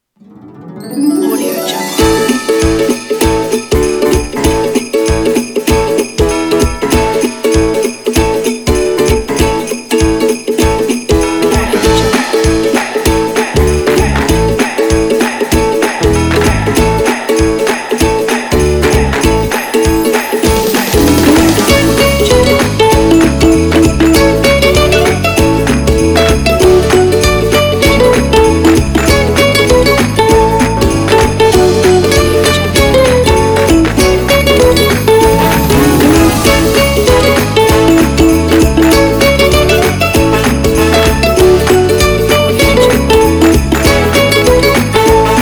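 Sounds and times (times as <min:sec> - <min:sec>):
upbeat Christmas music: 0:00.1 - 0:45.4.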